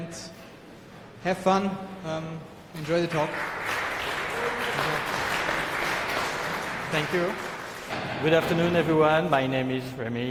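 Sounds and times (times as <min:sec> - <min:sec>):
speech: 0:01.2 - 0:03.7, 0:06.9 - 0:10.3
audience applause at a technical conference talk: 0:02.8 - 0:08.4.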